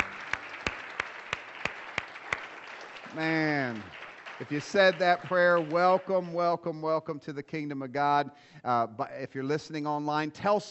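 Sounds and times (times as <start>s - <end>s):
scattered applause: 0.0s - 6.7s
audience rhythmic unison hand clapping: 0.0s - 7.0s
speech: 3.1s - 10.6s.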